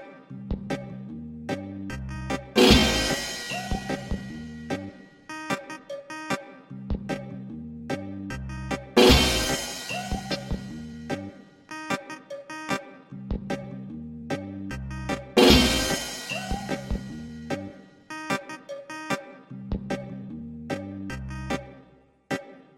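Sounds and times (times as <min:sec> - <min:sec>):
reggae music: 0:00.0 - 0:22.7
saxophone: 0:05.3 - 0:06.8, 0:08.3 - 0:09.0, 0:09.9 - 0:13.6, 0:14.7 - 0:15.4, 0:16.5 - 0:19.6, 0:21.1 - 0:21.9.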